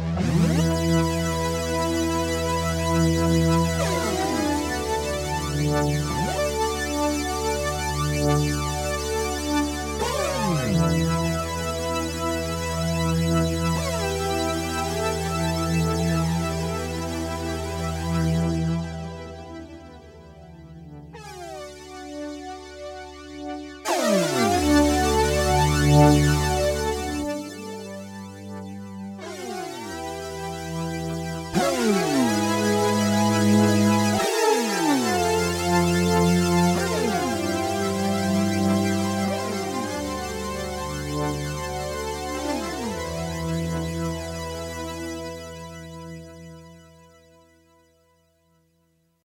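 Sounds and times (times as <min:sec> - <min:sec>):
80s polyphonic synth glide: 0:00.2 - 0:22.4, 0:23.9 - 0:46.4.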